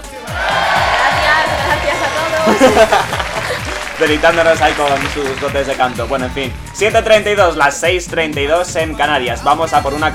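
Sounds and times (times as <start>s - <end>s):
audience applause and cheering: 0.0s - 6.9s
laughter: 0.6s - 5.7s
speech: 2.5s - 3.2s, 4.0s - 10.1s.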